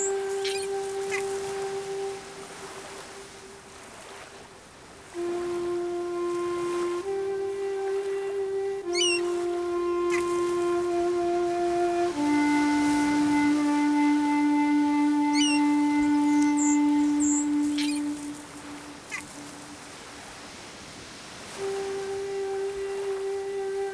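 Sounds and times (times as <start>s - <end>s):
seagulls calling: 0.0s - 3.1s, 6.3s - 19.8s
ocean waves: 0.0s - 23.9s.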